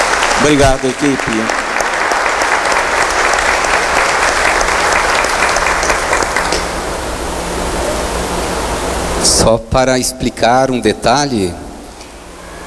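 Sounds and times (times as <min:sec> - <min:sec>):
crowd applauding: 0:00.0 - 0:09.2
speech: 0:00.4 - 0:01.6, 0:09.3 - 0:11.6.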